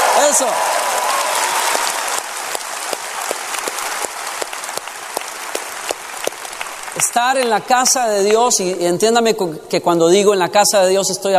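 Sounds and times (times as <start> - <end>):
audience applauding: 0.0 - 8.8
speech: 0.3 - 0.8, 7.0 - 11.3.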